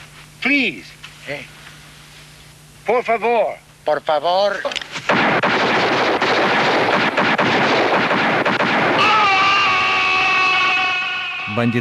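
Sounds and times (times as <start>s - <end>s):
speech: 0.4s - 1.6s, 2.9s - 4.8s, 11.6s - 11.7s
revolver gunfire in a shootout: 4.9s - 10.9s.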